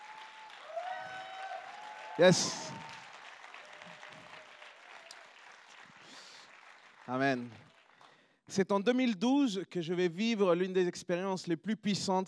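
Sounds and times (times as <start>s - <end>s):
audience applause: 0.0s - 8.2s
speech: 2.2s - 2.8s, 7.1s - 7.7s, 8.5s - 12.2s.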